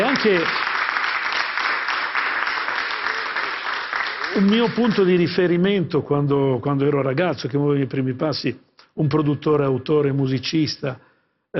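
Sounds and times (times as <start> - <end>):
audience applause at a music project presentation: 0.0 - 5.4
speech: 0.2 - 0.6, 4.4 - 11.5.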